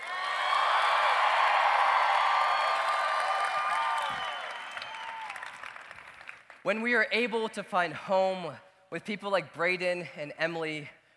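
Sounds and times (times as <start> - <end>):
audience applause: 0.0 - 6.6
speech: 6.6 - 11.1.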